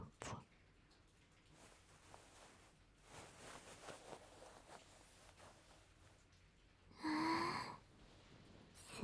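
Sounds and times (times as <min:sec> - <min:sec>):
oil massage ASMR: 0:01.1 - 0:08.9
ear licking ASMR: 0:01.4 - 0:06.4.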